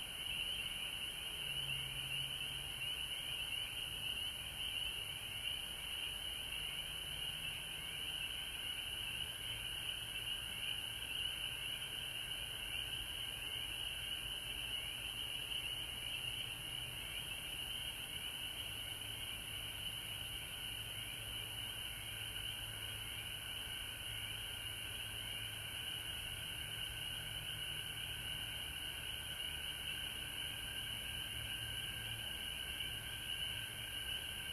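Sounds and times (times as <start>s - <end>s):
frog chorus trilling: 0.0s - 34.5s.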